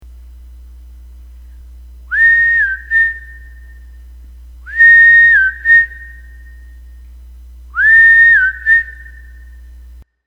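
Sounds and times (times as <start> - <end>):
whistle: 2.1 - 4.0, 4.6 - 6.8, 7.7 - 9.7.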